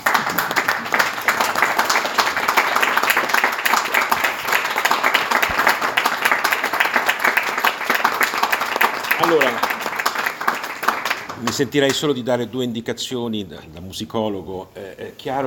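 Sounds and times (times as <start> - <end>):
audience applause after a performance: 0.0 - 12.2
speech: 11.6 - 15.4.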